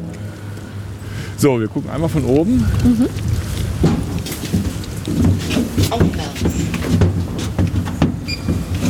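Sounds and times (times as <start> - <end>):
speech: 1.4 - 7.1
elevator door closing: 8.1 - 8.7.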